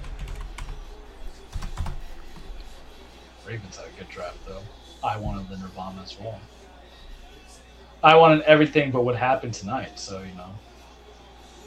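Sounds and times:
typing on a computer keyboard as a name is entered: 0.0 - 0.8, 1.5 - 2.0
speech: 3.5 - 6.6, 8.0 - 10.7.

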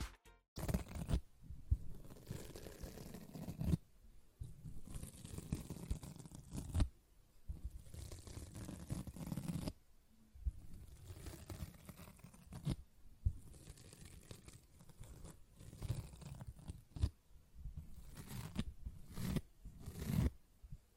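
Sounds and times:
sponge scratching squishing brushing and cutting: 1.9 - 3.8, 4.6 - 6.8, 7.7 - 9.8, 10.6 - 12.8, 13.4 - 17.1, 17.8 - 20.4.

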